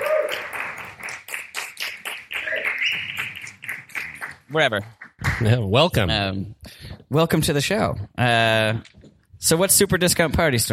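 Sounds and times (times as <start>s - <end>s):
live comedy audience in London clapping to welcome comedians: 0.0s - 5.6s
speech: 4.5s - 10.7s.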